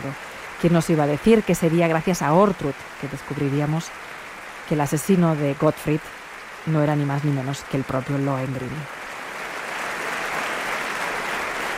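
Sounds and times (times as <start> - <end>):
speech: 0.0 - 4.1, 4.7 - 9.0
audience applauding after opera performance: 9.3 - 11.7.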